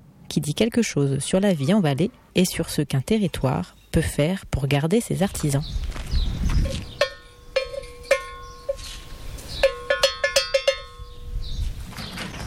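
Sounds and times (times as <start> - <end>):
speech: 0.4 - 6.3
small metal bell ringing: 7.0 - 8.8, 9.6 - 11.3.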